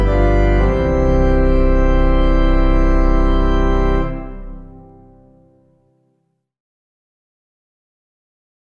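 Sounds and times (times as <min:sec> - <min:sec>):
organ playing a hymn: 0:00.0 - 0:05.8.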